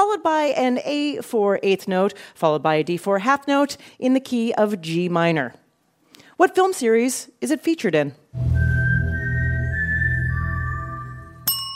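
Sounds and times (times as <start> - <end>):
speech: 0.1 - 5.6, 6.4 - 8.6
human whistling four-note melody: 8.4 - 11.5.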